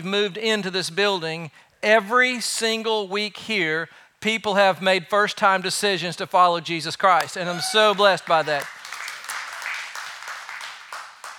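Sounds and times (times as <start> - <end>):
speech: 0.0 - 8.8
audience clapping: 7.2 - 11.3.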